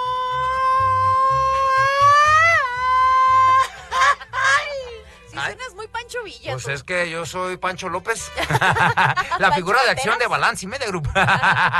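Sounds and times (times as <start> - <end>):
Mexican grito shout: 0.0 - 4.5
laughter: 3.4 - 4.9, 8.3 - 10.0, 10.9 - 11.7
speech: 6.7 - 11.7.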